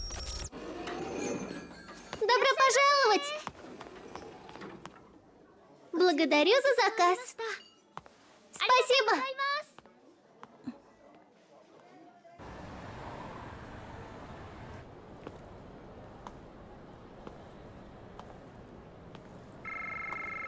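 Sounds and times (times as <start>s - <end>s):
speech: 2.7s - 3.4s, 6.1s - 7.6s, 8.8s - 9.4s
continuous rumble of road traffic: 12.4s - 19.7s
incoming-call phone ringtone: 19.7s - 20.4s.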